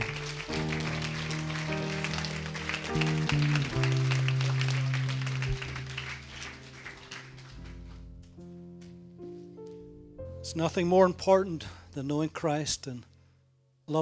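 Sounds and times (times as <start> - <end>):
people clapping to Jesus: 0.0 - 8.3
speech: 10.5 - 13.1, 13.9 - 14.0.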